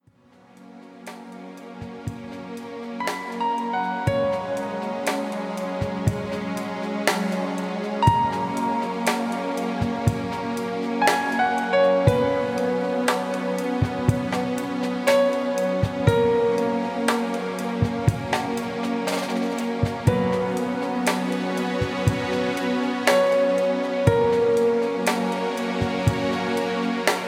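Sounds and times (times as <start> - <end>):
relaxing piano music: 1.1 - 27.2.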